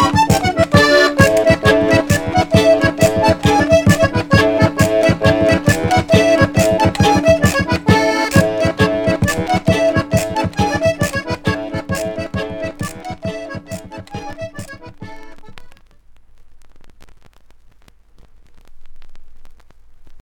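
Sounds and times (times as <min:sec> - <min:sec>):
French traditional folk march for the end of a ball: 0:00.0 - 0:15.8.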